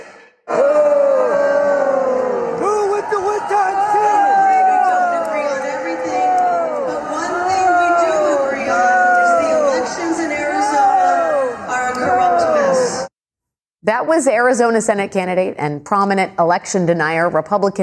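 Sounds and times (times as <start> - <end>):
crowd loudly booing at the Arizona GOP annual convention: 0.5 - 13.1
speech: 14.1 - 17.8.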